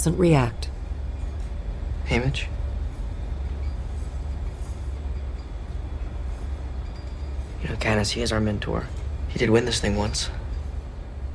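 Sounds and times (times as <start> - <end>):
speech: 0.0 - 0.6, 2.1 - 2.6, 7.6 - 10.4
train moving along the rails through the countryside: 0.0 - 11.3.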